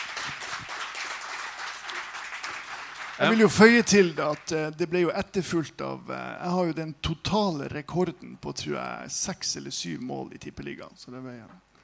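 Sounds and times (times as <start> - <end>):
applause: 0.0 - 4.6
speech: 3.2 - 11.7.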